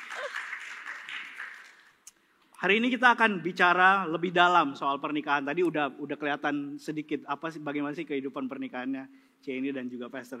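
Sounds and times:
audience applauding: 0.0s - 2.0s
speech: 2.6s - 10.3s.

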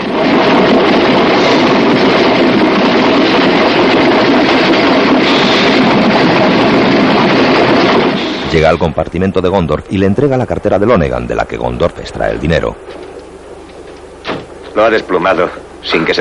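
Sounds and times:
train wheel clatter: 0.0s - 8.5s
moving train rumbling: 0.0s - 16.1s
speech: 8.5s - 13.1s, 14.8s - 16.1s.

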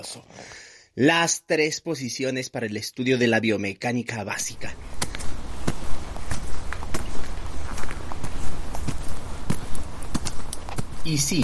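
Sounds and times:
speech: 0.0s - 5.0s, 11.0s - 11.4s
constant low rumbling background: 4.4s - 11.4s
footsteps of a person walking: 4.4s - 11.4s.

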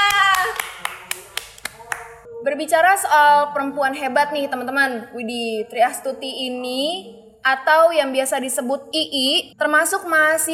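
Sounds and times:
audience applause: 0.0s - 2.0s
speech: 2.4s - 10.5s.

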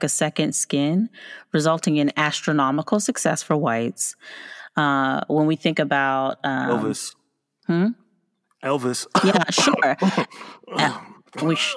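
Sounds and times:
speech: 0.0s - 8.0s, 8.6s - 11.7s
pretend cough: 9.1s - 11.7s.

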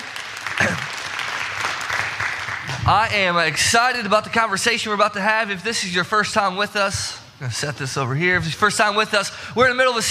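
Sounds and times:
congregation applauding the worship team at a Sunday church service: 0.0s - 4.0s
speech: 2.9s - 10.0s.

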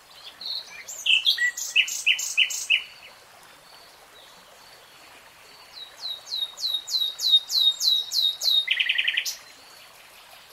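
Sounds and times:
nightingale singing: 0.2s - 3.0s, 5.8s - 9.4s.

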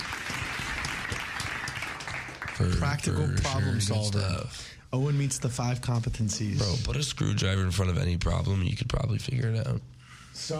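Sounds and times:
group of people clapping: 0.0s - 4.0s
speech: 2.6s - 10.5s.

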